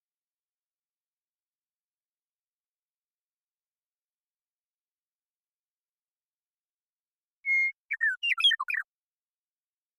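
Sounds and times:
Western meadowlark singing: 7.4s - 8.9s.

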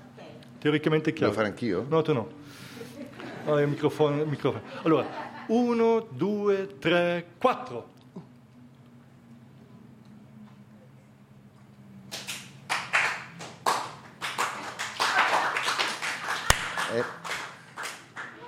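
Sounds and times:
quiet hum: 0.0s - 15.1s
speech: 0.6s - 2.8s, 3.4s - 8.3s
laughter: 2.7s - 5.7s
audience clapping together: 12.1s - 18.4s
sharp loud snap: 16.5s - 16.8s.

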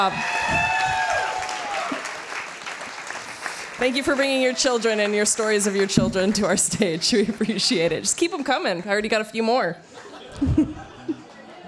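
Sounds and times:
speech: 0.0s - 0.8s, 3.8s - 10.8s
audience applause: 0.0s - 7.6s
laughter: 5.7s - 8.2s, 9.9s - 11.6s.

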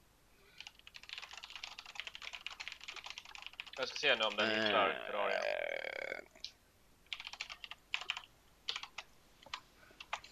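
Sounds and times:
typing an IP address on a computer keyboard: 0.6s - 4.4s, 7.1s - 10.2s
speech: 3.8s - 5.7s.

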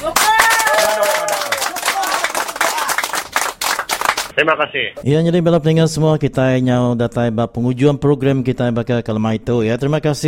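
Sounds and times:
audience clapping: 0.0s - 4.4s
speech: 4.4s - 10.2s.

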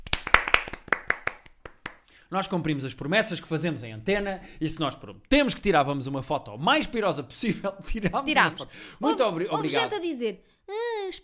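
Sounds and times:
hosts clapping their hands: 0.0s - 2.1s
speech: 2.3s - 11.2s
laughter: 9.0s - 10.0s.

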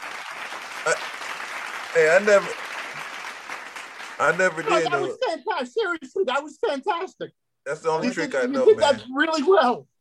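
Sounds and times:
hand clapping: 0.0s - 4.9s
speech: 0.8s - 1.1s, 2.0s - 2.6s, 4.2s - 9.9s.

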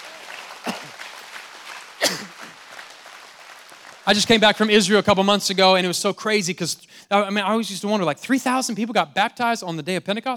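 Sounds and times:
audience clapping hands: 0.0s - 5.2s
speech: 4.1s - 10.3s.

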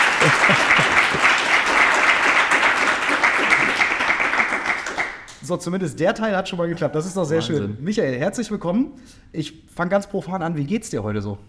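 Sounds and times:
laughter: 0.0s - 1.8s
live audience in Bielefeld clapping to welcome a football club's sporting director: 0.0s - 5.6s
speech: 5.5s - 11.4s.

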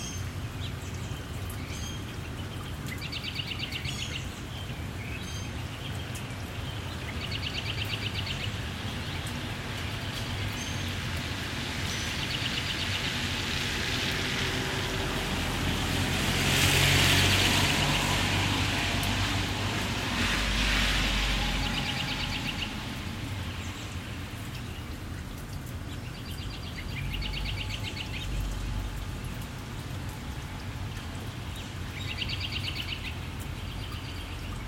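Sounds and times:
light rain in a suburban neighborhood: 0.0s - 34.6s
low traffic rumble: 0.0s - 34.6s
vehicle passing on wet road: 13.0s - 24.6s.

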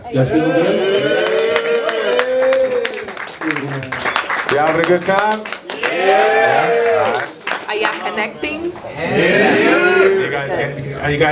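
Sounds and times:
speech: 0.1s - 1.2s, 4.6s - 11.3s
audience clapping: 0.6s - 8.9s.

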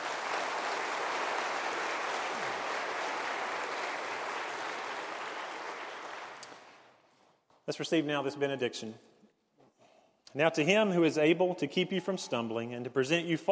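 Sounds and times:
audience applause for the choir: 0.0s - 6.9s
speech: 7.7s - 9.1s, 10.3s - 13.5s.

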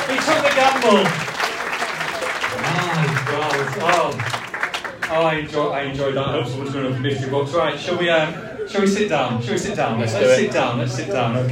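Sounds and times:
audience round of applause: 0.0s - 5.3s
speech: 0.1s - 1.3s, 2.6s - 4.5s, 5.1s - 11.4s.

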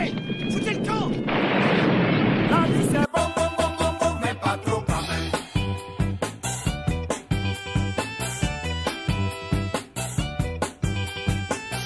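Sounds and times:
loud roaring explosion: 1.1s - 3.1s
rhythmic music with steady beat: 3.1s - 11.8s.

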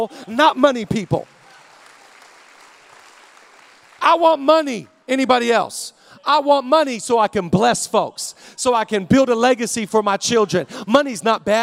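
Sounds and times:
speech: 0.0s - 1.3s, 4.0s - 11.6s
audience clapping: 0.7s - 4.5s.

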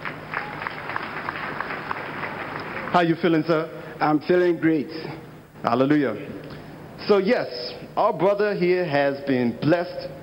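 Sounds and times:
audience clapping: 0.0s - 3.2s
speech: 2.9s - 10.2s.

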